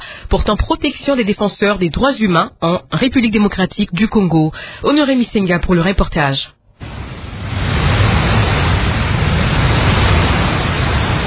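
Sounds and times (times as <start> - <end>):
speech: 0.3 - 6.6
waterfall rumble on the Inkissi river: 6.8 - 11.2.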